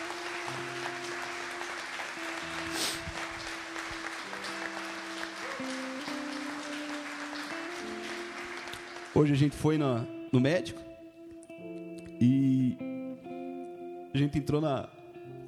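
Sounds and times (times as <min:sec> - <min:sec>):
crowd clapping: 0:00.0 - 0:10.2
sustained keyboard chords: 0:00.0 - 0:15.4
speech: 0:00.5 - 0:00.8, 0:09.2 - 0:10.9, 0:14.2 - 0:15.0.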